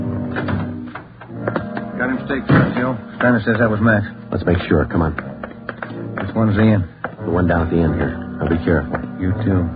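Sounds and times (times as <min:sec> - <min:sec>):
door closing: 0:00.2 - 0:03.4
speech: 0:02.3 - 0:05.3, 0:06.4 - 0:09.7.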